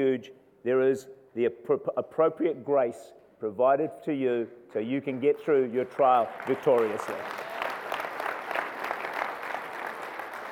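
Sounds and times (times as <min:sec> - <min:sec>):
speech: 0:00.0 - 0:07.4
audience clapping: 0:05.0 - 0:10.5.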